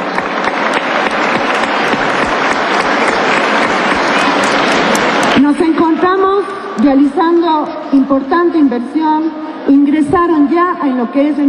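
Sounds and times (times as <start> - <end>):
applause: 0.0 - 5.4
speech: 6.4 - 11.4.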